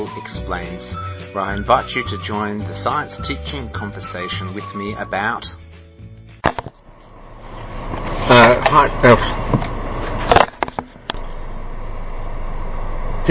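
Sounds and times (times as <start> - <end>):
speech: 0.0 - 5.6, 8.3 - 9.7
road noise inside a moving car: 6.8 - 13.3.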